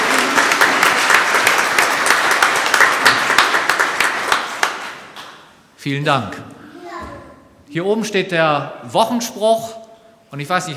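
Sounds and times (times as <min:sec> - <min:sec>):
audience applause in church: 0:00.0 - 0:05.4
speech: 0:05.8 - 0:06.4, 0:07.7 - 0:10.7.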